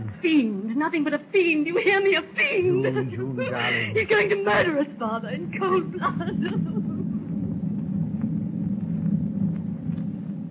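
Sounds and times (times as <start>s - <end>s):
speech: 0.2s - 6.9s
thunder rolling across the dark ocean: 2.8s - 10.4s.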